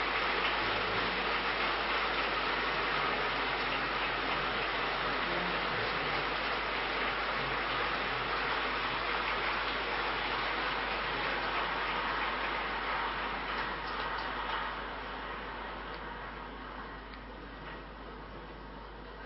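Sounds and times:
audience clapping: 0.0 - 17.9.

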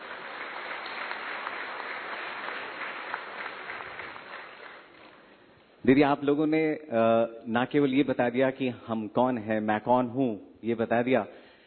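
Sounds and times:
audience applauding loudly: 0.0 - 5.4
speech: 5.8 - 11.4.

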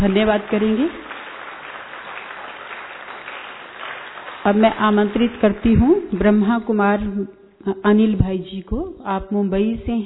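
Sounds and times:
speech: 0.0 - 1.1, 4.4 - 10.0
crowd applause: 0.0 - 4.6.

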